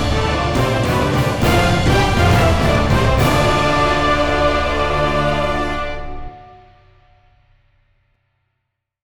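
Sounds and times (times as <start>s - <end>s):
music track at 102 BPM: 0.0s - 7.2s.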